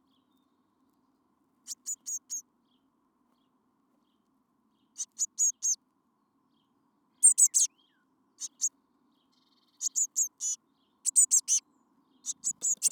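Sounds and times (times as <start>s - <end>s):
Eurasian blue tit calling: 1.7s - 2.4s, 5.0s - 5.8s, 7.2s - 7.7s, 8.4s - 8.7s, 9.8s - 11.6s, 12.2s - 12.9s.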